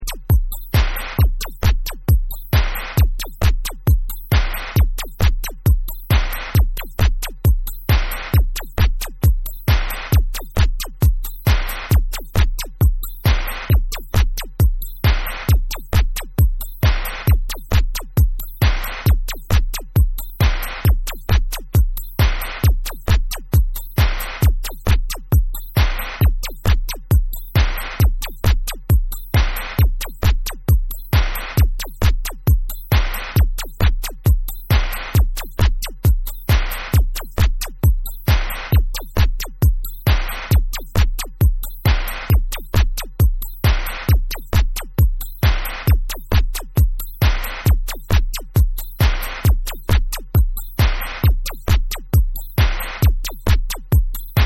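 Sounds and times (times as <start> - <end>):
electro dub beat: 0.0 - 54.4.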